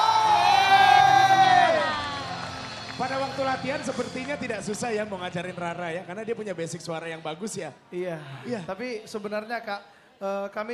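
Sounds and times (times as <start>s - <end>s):
audience applause and cheering: 0.0s - 5.8s
speech: 3.4s - 10.7s.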